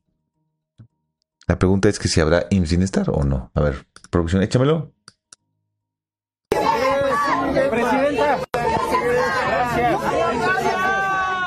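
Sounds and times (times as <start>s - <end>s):
speech: 1.5s - 5.0s
crowd shouting a chant at rally: 6.5s - 11.4s.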